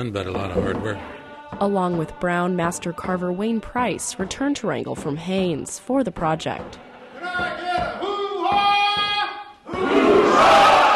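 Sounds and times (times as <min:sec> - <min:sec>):
speech: 0:00.0 - 0:07.9
large crowd cheering: 0:06.8 - 0:10.9
person shouting a rallying call: 0:07.2 - 0:09.5.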